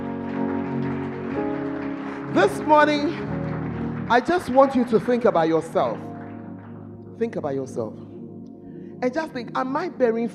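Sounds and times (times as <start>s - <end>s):
audience clapping: 0.0s - 6.9s
speech: 2.3s - 3.3s, 4.1s - 6.1s, 7.2s - 8.0s, 9.0s - 10.3s.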